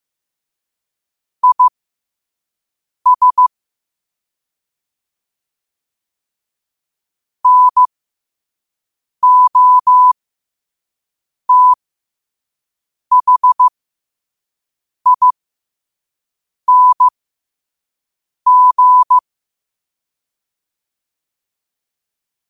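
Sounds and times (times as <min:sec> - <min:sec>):
morse code at 5 wpm: 0:01.4 - 0:01.7, 0:03.1 - 0:03.5, 0:07.4 - 0:07.9, 0:09.2 - 0:10.2, 0:11.5 - 0:11.8, 0:13.1 - 0:13.7, 0:15.1 - 0:15.3, 0:16.7 - 0:17.1, 0:18.5 - 0:19.2.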